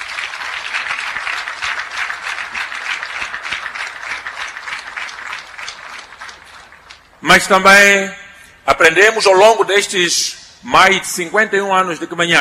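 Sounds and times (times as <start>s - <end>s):
audience applause: 0.0s - 7.2s
speech: 7.2s - 12.3s.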